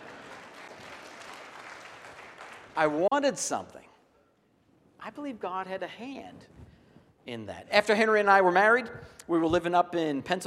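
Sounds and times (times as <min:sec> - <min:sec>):
faint audience applause: 0:00.0 - 0:03.1
speech: 0:02.8 - 0:03.8, 0:05.0 - 0:06.6, 0:07.2 - 0:10.4.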